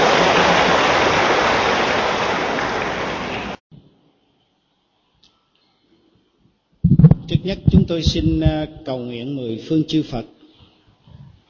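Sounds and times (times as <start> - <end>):
applause in an assembly hall: 0.0 - 3.6
speech: 7.4 - 10.4.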